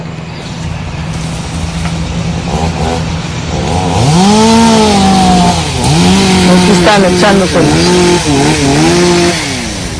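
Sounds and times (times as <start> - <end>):
chainsaws cutting tree trunks: 1.1 - 9.9
chainsaw revving into wood: 2.4 - 9.9
speech: 7.0 - 9.4.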